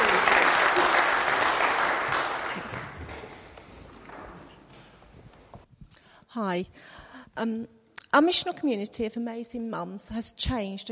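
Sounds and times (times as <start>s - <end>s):
audience applause: 0.0s - 3.5s
speech: 6.4s - 10.8s.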